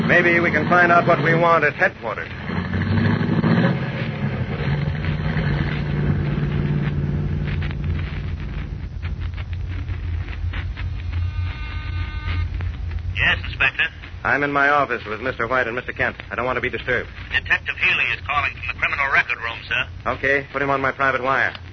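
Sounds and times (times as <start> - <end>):
car driving: 0.0 - 14.3
speech: 0.1 - 3.7, 13.2 - 21.7.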